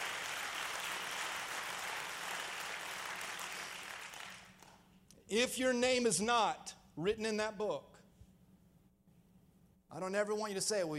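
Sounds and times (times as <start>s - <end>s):
large crowd clapping: 0.0s - 4.9s
speech: 5.3s - 7.9s, 10.0s - 10.9s.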